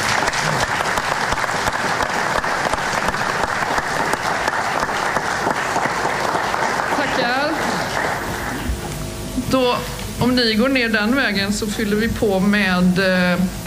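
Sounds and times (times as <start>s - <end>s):
audience applause at a Swedish political party event: 0.0s - 9.0s
speech: 9.6s - 13.6s.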